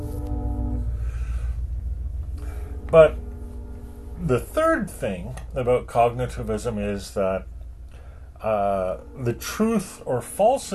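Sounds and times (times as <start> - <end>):
horn-like tone: 0.0 - 5.7, 8.0 - 10.7
train passing: 0.0 - 10.7
speech: 2.9 - 3.2, 4.2 - 7.5, 8.4 - 10.7.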